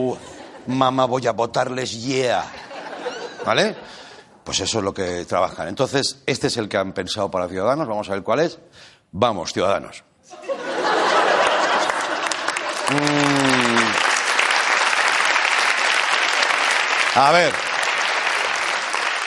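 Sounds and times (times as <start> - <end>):
speech: 0.0 - 2.6, 3.4 - 10.4, 12.9 - 13.4, 17.2 - 17.7
laughter: 2.5 - 4.0, 10.3 - 14.0
audience applause: 11.0 - 19.2.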